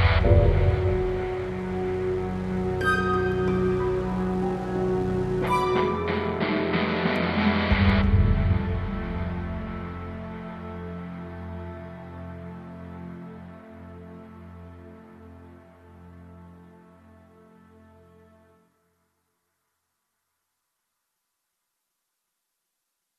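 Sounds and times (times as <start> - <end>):
dramatic orchestral guitar music: 0.0 - 17.9.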